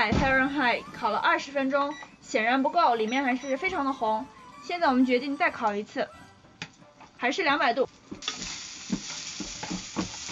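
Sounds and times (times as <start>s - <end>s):
speech: 0.0s - 6.2s, 7.2s - 8.5s
celery stir-frying over medium heat: 8.2s - 10.3s.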